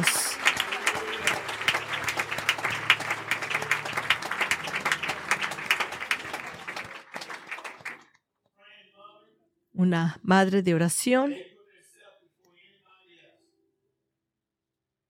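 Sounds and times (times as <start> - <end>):
audience applause: 0.0 - 8.2
speech: 9.8 - 11.5.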